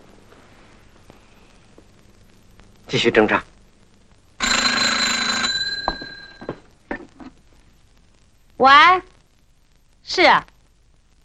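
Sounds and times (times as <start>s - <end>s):
speech: 2.9s - 3.5s, 8.6s - 9.1s, 10.1s - 10.5s
telephone bell ringing: 4.4s - 6.7s.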